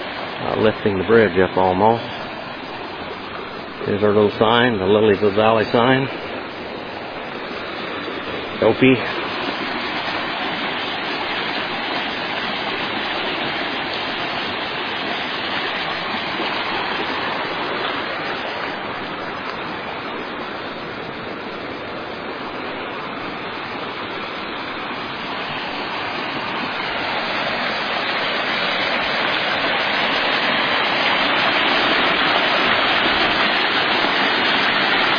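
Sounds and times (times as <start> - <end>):
creek roaring with high water: 0.0 - 35.1
speech: 0.4 - 2.1, 3.8 - 6.2, 8.6 - 9.2.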